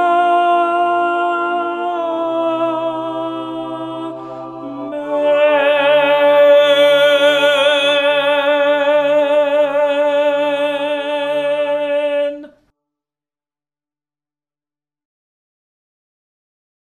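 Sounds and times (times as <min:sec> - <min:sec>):
tenor singing a sacred song: 0:00.0 - 0:12.6.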